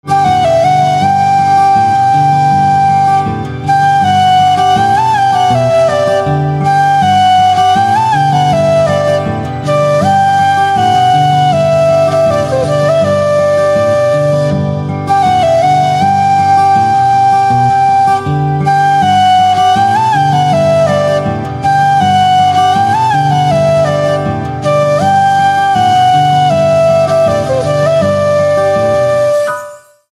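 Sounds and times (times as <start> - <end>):
flute instrumental ringtone: 0.0 - 30.1.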